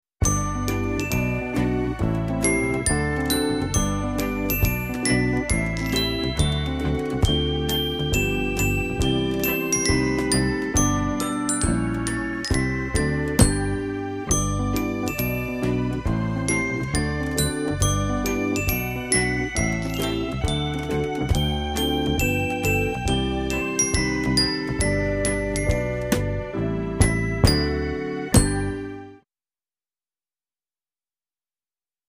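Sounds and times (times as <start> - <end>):
background music: 0.2 - 29.2.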